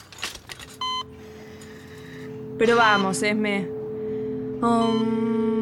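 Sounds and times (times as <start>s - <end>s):
hospital monitor beep: 0.8s - 1.1s, 2.8s - 3.3s, 4.8s - 5.2s
speech: 2.6s - 3.8s, 4.6s - 5.5s.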